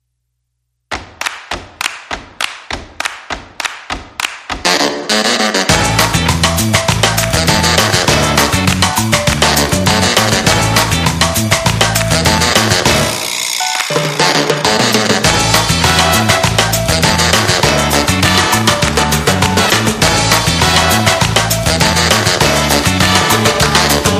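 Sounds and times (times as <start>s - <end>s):
instrumental music: 2.9s - 24.1s.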